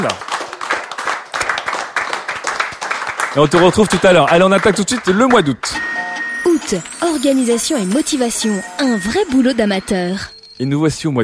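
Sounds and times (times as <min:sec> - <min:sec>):
speech: 0:00.0 - 0:00.3, 0:03.4 - 0:06.0, 0:06.6 - 0:11.2
audience applause at a live show in Cannes: 0:00.0 - 0:05.8.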